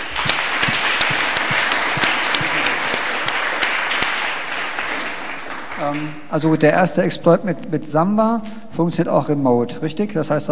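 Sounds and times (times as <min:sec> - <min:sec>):
audience applause: 0:00.0 - 0:06.3
speech: 0:05.8 - 0:10.5.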